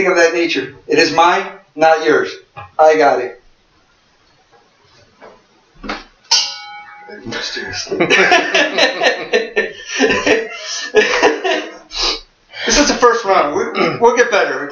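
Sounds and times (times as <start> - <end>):
speech: 0.0 - 3.4, 7.1 - 9.4, 10.0 - 14.7
ashtray struck with a letter opener: 5.9 - 7.2
laughter: 7.1 - 12.0.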